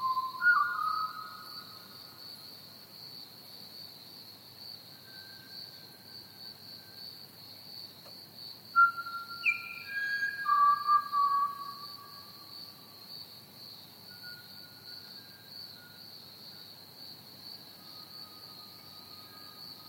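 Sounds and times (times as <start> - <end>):
Pied Butcherbird whistling: 0.0 - 1.3, 8.8 - 11.8.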